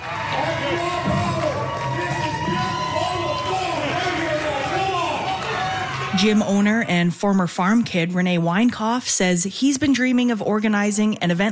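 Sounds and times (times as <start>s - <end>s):
excited audience cheering at a strongman competition, Lloydminster Exhibition Center: 0.0s - 7.2s
speech: 6.2s - 11.4s.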